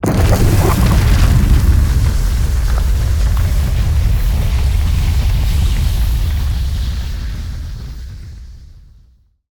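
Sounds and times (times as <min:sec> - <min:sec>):
mortar cannon: 0:00.0 - 0:06.7
flame puddle burning: 0:00.0 - 0:09.2.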